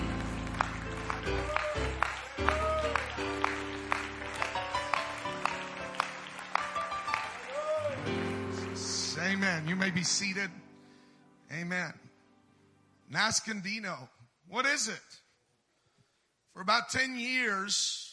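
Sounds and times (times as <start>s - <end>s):
audience hand clapping in praise: 0.0s - 10.1s
speech: 9.9s - 10.6s, 11.5s - 12.0s, 13.1s - 15.2s, 16.6s - 18.1s.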